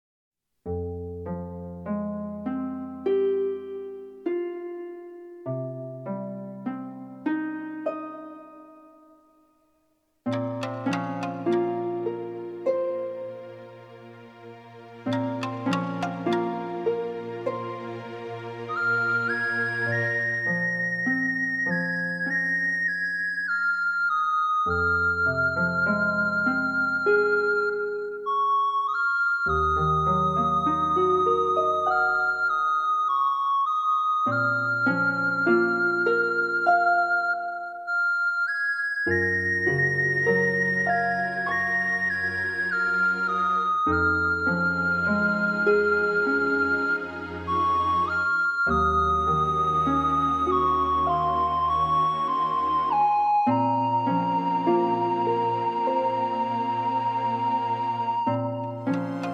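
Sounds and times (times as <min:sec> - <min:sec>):
instrumental music: 0:00.6 - 0:59.3.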